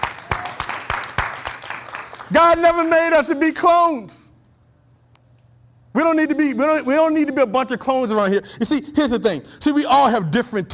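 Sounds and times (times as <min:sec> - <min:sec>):
audience clapping: 0:00.0 - 0:02.9
speech: 0:02.3 - 0:04.2, 0:06.0 - 0:10.7.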